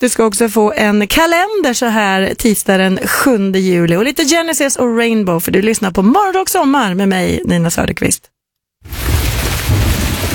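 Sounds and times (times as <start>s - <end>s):
speech: 0.0s - 9.2s
heavy rain: 8.8s - 10.3s
low thunder rumbling: 8.8s - 10.3s.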